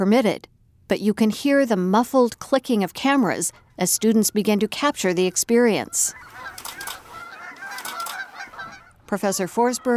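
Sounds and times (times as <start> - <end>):
speech: 0.0 - 7.0, 9.1 - 9.9
dense chorus of birds honking: 4.0 - 9.9.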